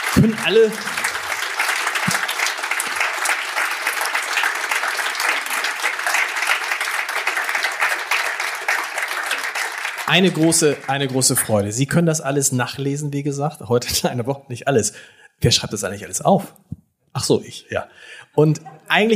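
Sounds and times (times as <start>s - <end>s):
laughter: 0.0s - 1.1s
audience applause: 0.0s - 11.8s
speech: 0.2s - 1.0s, 10.1s - 19.1s.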